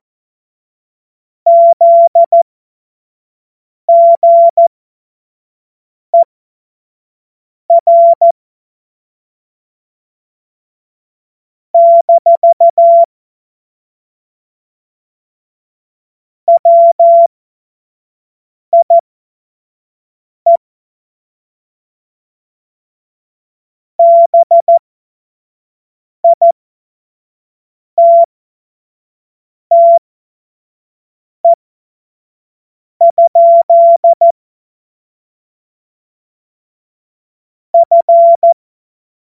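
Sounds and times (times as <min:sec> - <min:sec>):
morse code beeps: 0:01.5 - 0:02.4, 0:03.9 - 0:04.7, 0:07.7 - 0:08.3, 0:11.8 - 0:13.1, 0:16.5 - 0:17.3, 0:18.8 - 0:19.0, 0:24.0 - 0:24.8, 0:26.3 - 0:26.5, 0:28.0 - 0:28.3, 0:29.7 - 0:30.0, 0:33.0 - 0:34.3, 0:37.8 - 0:38.6.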